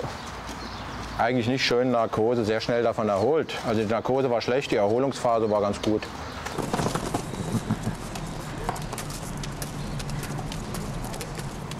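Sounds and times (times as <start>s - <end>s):
speech: 1.2s - 6.8s
horses approaching, hooves clopping: 5.8s - 11.7s.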